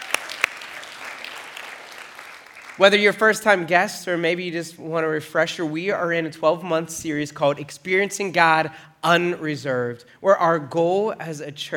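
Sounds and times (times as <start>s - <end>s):
audience applause for first-time guests: 0.0s - 2.8s
speech: 2.8s - 11.7s.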